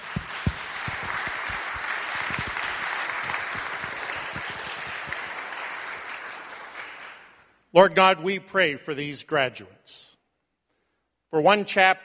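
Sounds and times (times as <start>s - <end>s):
audience applauding graduates: 0.0s - 7.4s
speech: 7.8s - 10.1s, 11.3s - 12.0s.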